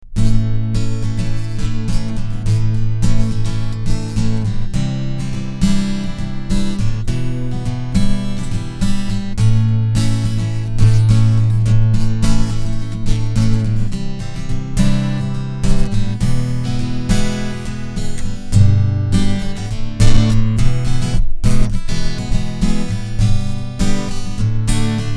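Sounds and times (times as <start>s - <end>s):
strumming through piezo pickup: 0.0s - 25.1s.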